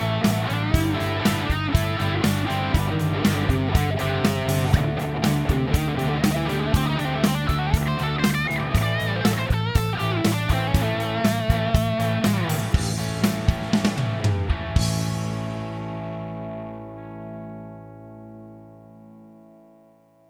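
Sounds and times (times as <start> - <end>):
rock solo: 0.0 - 19.8.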